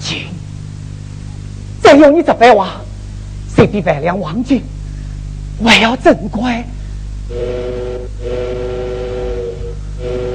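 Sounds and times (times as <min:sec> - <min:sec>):
soft hiss: 0:00.0 - 0:10.3
speech: 0:02.0 - 0:02.9, 0:03.6 - 0:04.7, 0:05.6 - 0:07.8
train whistle as train departs: 0:07.3 - 0:10.3.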